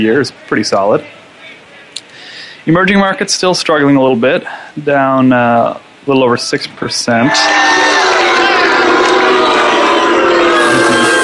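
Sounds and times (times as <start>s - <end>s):
speech: 0.0s - 1.2s, 2.6s - 8.0s
large crowd groaning and jeering in disapproval: 7.3s - 11.2s.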